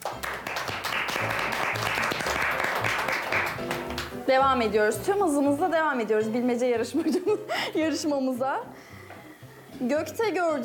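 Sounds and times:
small group applause: 0:00.0 - 0:04.2
speech: 0:04.3 - 0:08.9, 0:09.8 - 0:10.6.

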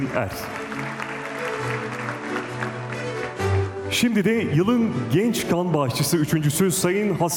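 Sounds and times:
speech: 0:00.0 - 0:01.0, 0:03.9 - 0:07.3
audience applause at an award ceremony for young blood donors: 0:00.0 - 0:03.9.

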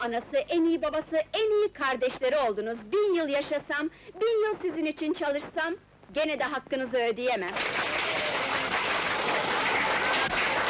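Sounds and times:
speech: 0:00.0 - 0:08.3
crowd applause: 0:07.5 - 0:10.6.

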